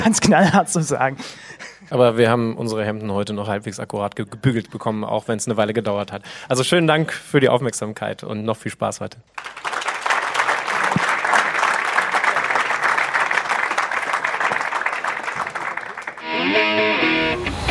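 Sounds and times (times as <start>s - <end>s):
speech: 0.0s - 9.8s
audience applause: 9.4s - 17.6s.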